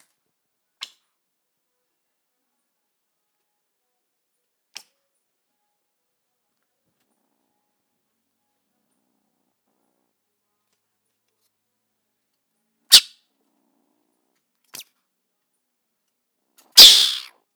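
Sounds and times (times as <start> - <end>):
mongoose hissing: 16.8 - 17.3.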